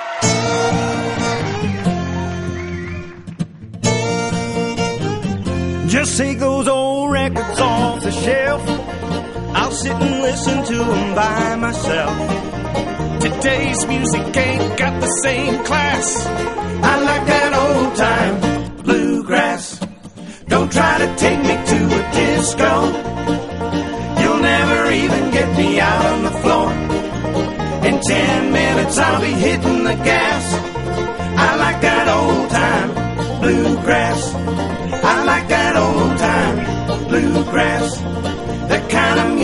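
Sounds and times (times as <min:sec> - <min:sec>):
old time bluegrass music: 0:00.2 - 0:39.4.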